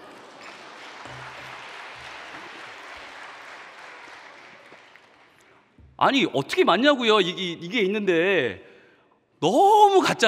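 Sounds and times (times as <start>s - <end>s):
audience clapping: 0.0s - 5.8s
speech: 6.0s - 8.7s, 9.4s - 10.2s.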